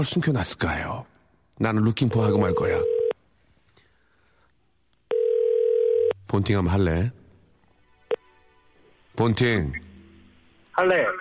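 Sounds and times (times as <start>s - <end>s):
speech: 0.0s - 2.9s, 6.3s - 7.2s, 9.2s - 9.8s, 10.8s - 11.1s
telephone ringing tone of outgoing call: 2.4s - 3.2s, 5.1s - 6.2s.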